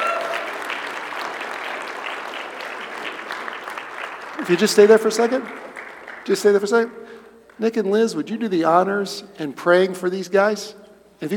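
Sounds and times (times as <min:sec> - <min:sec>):
round of applause: 0:00.0 - 0:06.9
speech: 0:04.4 - 0:05.7, 0:06.3 - 0:11.3.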